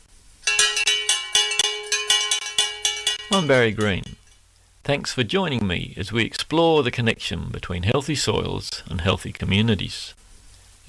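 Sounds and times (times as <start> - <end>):
handbell ringing to open a market: 0.4 - 4.3
speech: 3.3 - 4.2, 4.8 - 10.2.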